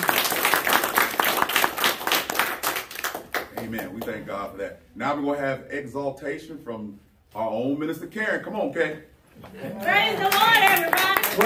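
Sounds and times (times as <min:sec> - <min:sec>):
audience clapping in praise: 0:00.0 - 0:04.2, 0:09.8 - 0:11.4
speech: 0:03.7 - 0:11.4.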